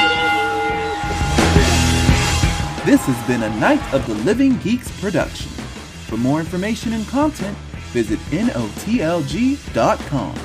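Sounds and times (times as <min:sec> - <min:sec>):
bell ringing: 0:00.0 - 0:05.3
speech: 0:02.8 - 0:10.4.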